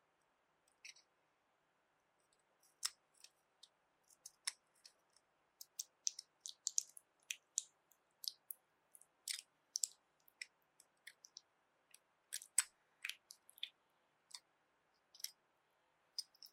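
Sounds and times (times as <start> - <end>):
wet jelly squishes and sticky clicks: 5.6 - 15.4, 16.2 - 16.5.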